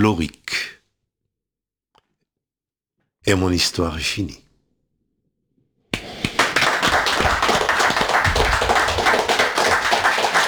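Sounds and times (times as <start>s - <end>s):
speech: 0.0s - 0.7s, 3.2s - 4.4s
hand clapping: 6.0s - 10.4s.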